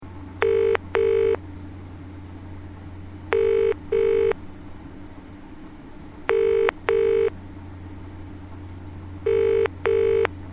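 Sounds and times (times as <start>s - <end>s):
Telstra GSM ringtone: 0.4s - 1.4s, 3.3s - 4.4s, 6.3s - 7.3s, 9.2s - 10.3s.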